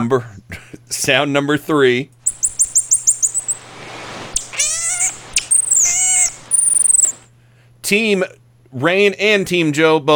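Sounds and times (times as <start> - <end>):
speech: 0.0 - 2.2, 7.9 - 10.1
marmoset singing to its owner: 2.2 - 3.7, 4.4 - 7.3.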